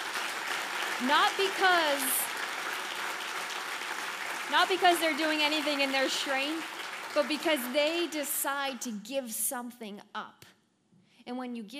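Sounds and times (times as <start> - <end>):
audience applause: 0.0 - 8.8
speech: 1.0 - 2.2, 4.5 - 10.5, 11.2 - 11.7.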